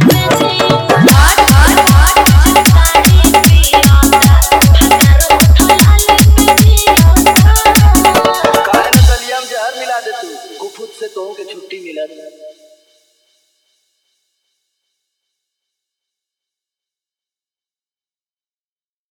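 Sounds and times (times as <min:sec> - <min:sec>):
dholki bass dance mix: 0:00.0 - 0:12.6.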